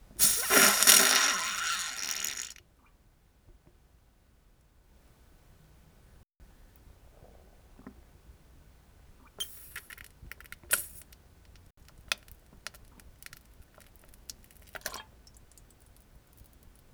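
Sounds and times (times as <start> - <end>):
farting: 0.2 - 2.6.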